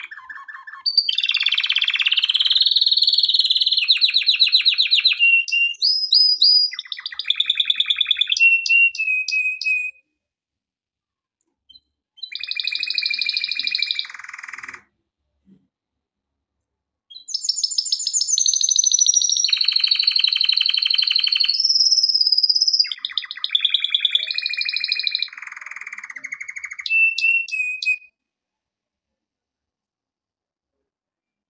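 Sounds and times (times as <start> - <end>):
canary trilling song: 0.0 - 10.0, 12.2 - 14.9, 17.1 - 28.1.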